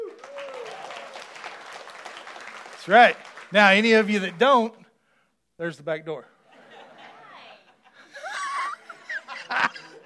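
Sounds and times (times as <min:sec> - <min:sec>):
audience applause: 0:00.0 - 0:04.7
speech: 0:02.8 - 0:04.8, 0:05.6 - 0:06.3
laughter: 0:06.5 - 0:10.0.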